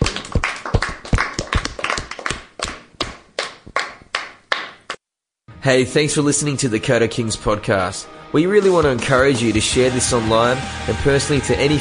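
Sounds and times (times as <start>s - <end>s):
small group clapping: 0.0s - 5.0s
speech: 5.6s - 11.7s.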